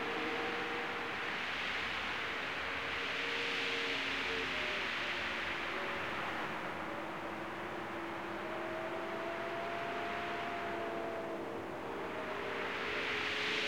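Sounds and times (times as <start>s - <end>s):
wind: 0.0s - 13.6s.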